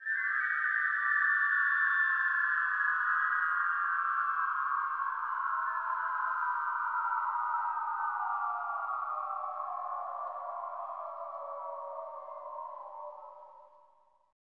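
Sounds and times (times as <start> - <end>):
whistle: 0.0 - 14.1.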